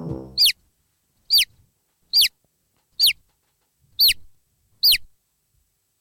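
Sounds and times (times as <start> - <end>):
brief low rumble: 0.0 - 0.5
chick peeping: 0.0 - 0.6, 2.1 - 2.3, 4.0 - 4.2, 4.8 - 5.1.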